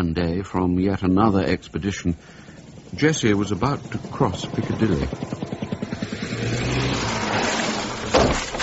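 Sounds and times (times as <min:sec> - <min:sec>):
speech: 0:00.0 - 0:05.4
car engine revving: 0:01.8 - 0:08.5.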